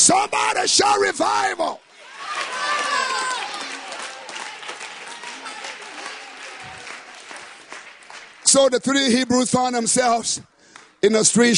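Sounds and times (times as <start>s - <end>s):
speech: 0.0s - 1.8s, 8.6s - 11.5s
audience clapping hands: 2.0s - 9.4s.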